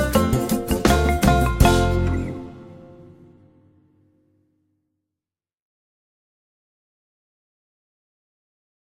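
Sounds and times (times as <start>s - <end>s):
instrumental music: 0.0s - 4.3s.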